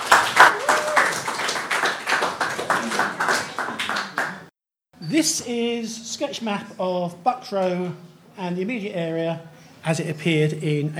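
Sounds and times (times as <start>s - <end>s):
round of applause: 0.0s - 4.5s
speech: 5.1s - 10.9s.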